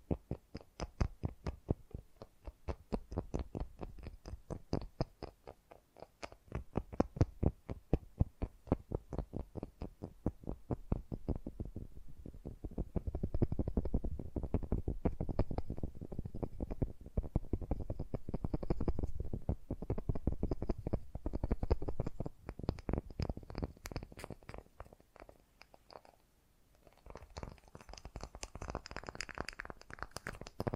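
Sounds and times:
fast gentle tapping: 0.0s - 26.2s, 26.8s - 30.7s.

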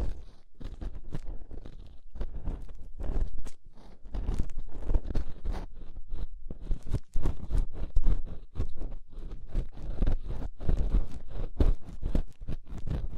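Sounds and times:
inner and outer ear scraping: 0.0s - 13.1s.

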